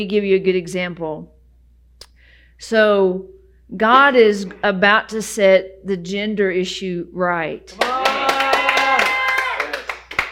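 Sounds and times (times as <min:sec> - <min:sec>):
speech: 0:00.0 - 0:01.4, 0:02.6 - 0:08.1
audience clapping: 0:07.7 - 0:10.2.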